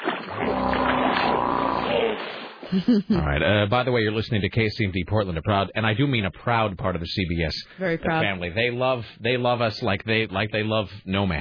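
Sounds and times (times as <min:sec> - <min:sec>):
something splashing in the water: 0:00.0 - 0:02.9
speech: 0:02.7 - 0:11.3.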